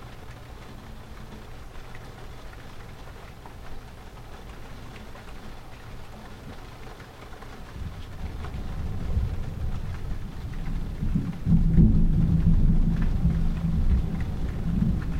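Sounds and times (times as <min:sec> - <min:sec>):
thunder: 0:07.8 - 0:15.1.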